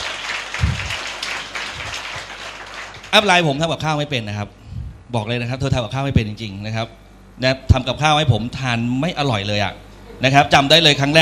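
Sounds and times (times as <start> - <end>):
crowd applauding: 0.0 - 3.3
speech: 3.1 - 11.2.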